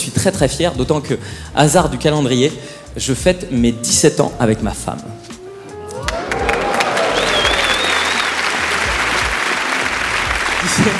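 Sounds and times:
speech: 0.2 - 5.3
audience applause: 6.0 - 10.9.

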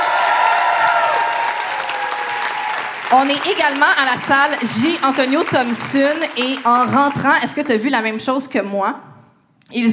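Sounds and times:
audience applause at the Trip d'humour festival in Trois-Rivières: 0.0 - 7.6
speech: 3.1 - 9.1, 9.7 - 9.9.

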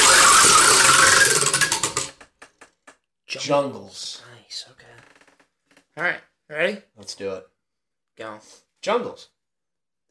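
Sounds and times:
topic wheel spinning with ratcheting ticks: 0.0 - 2.2
speech: 3.3 - 4.8, 6.0 - 7.5, 8.2 - 9.4.

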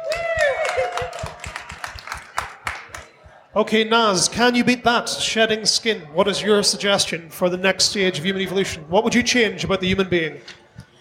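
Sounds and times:
people whooping and cheering: 0.0 - 2.5
applause: 0.0 - 3.2
speech: 3.6 - 10.6.

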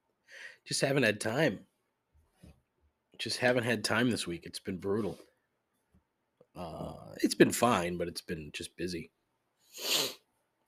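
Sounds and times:
speech: 0.6 - 1.7, 3.2 - 5.3, 6.6 - 10.2
person sniffling: 9.7 - 10.2
person sneezing: 9.8 - 10.2.

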